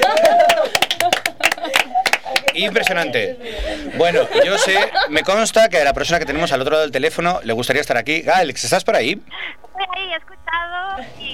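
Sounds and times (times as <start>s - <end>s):
voices cheering: 0.0s - 1.9s
applause: 0.0s - 3.0s
laughter: 0.0s - 6.6s
speech: 2.6s - 11.3s.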